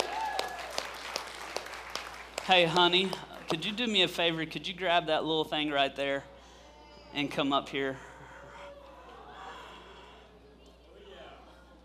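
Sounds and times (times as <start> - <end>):
audience applause: 0.0 - 3.7
speech: 2.5 - 6.3, 7.1 - 8.1.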